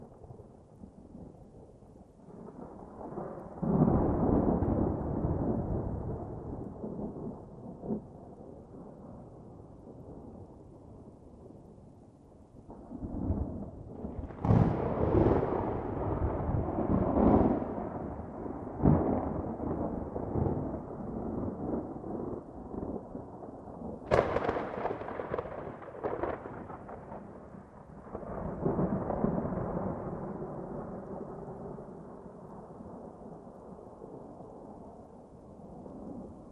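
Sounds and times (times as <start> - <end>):
medium thunder: 2.4 - 8.1, 12.7 - 32.4.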